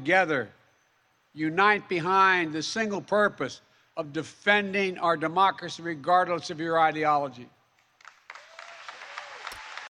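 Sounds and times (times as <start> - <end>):
speech: 0.0 - 0.6, 1.3 - 7.6
audience applause: 8.0 - 9.9
faint cheers: 8.3 - 9.9.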